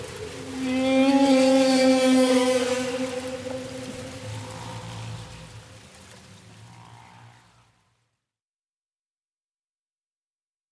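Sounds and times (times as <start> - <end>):
humpback whale moaning: 0.0 - 5.9.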